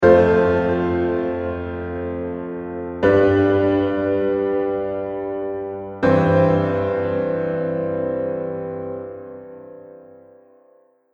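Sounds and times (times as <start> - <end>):
epic opening scene piano music: 0.0 - 10.8.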